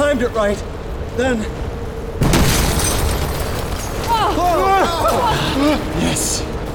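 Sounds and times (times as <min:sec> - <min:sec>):
speech: 0:00.2 - 0:01.7, 0:04.2 - 0:06.6
grenade explosion in a car: 0:02.2 - 0:04.2
people shouting: 0:04.1 - 0:05.8.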